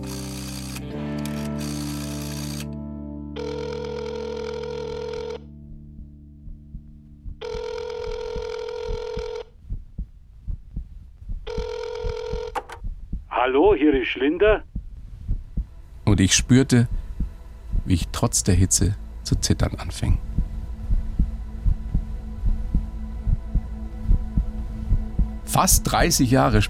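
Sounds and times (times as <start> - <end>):
low hum: 0.0 - 26.6
telephone ringing with a buzzy trill: 3.4 - 5.4, 7.4 - 9.5, 11.5 - 12.8
speech: 13.5 - 14.7, 16.2 - 17.0, 17.9 - 20.3, 25.6 - 26.6.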